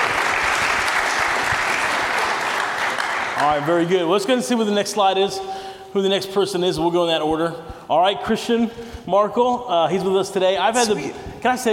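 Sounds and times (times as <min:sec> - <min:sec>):
audience round of applause: 0:00.0 - 0:03.7
speech: 0:03.4 - 0:11.7.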